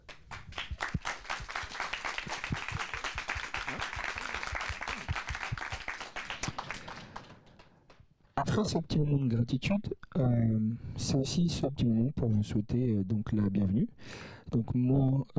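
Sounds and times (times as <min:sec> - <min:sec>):
audience applause to thank the musicians: 0:00.0 - 0:07.7
speech: 0:08.6 - 0:15.3.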